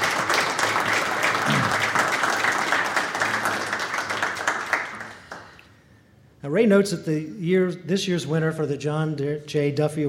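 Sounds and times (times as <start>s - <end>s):
audience applause: 0.0s - 5.6s
speech: 6.4s - 10.0s.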